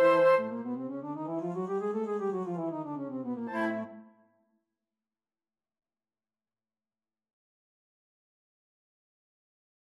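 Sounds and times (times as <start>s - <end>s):
flute: 0.0s - 4.2s.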